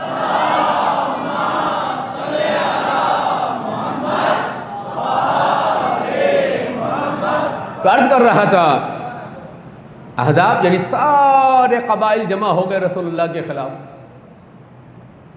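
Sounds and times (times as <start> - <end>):
large crowd reciting durood together in unison: 0.0 - 10.0
speech: 7.8 - 8.9, 10.2 - 13.9.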